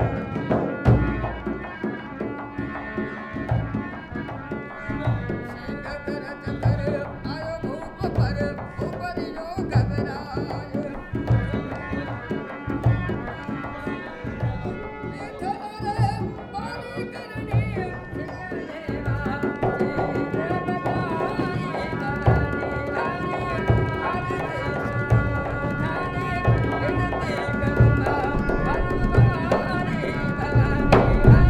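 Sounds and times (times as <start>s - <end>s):
harmonium at the Karni Mata Temple Deshnoke: 0.0s - 31.4s
drum at the Karni Mata Temple Deshnoke: 30.4s - 31.4s.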